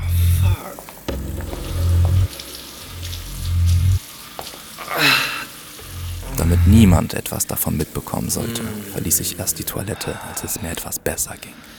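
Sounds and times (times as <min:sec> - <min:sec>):
low droning hum: 0:00.0 - 0:04.8, 0:05.8 - 0:07.2
hands rinsing a face: 0:00.0 - 0:11.7
cold tap water running in a toilet: 0:00.6 - 0:09.0
speech: 0:06.7 - 0:11.7.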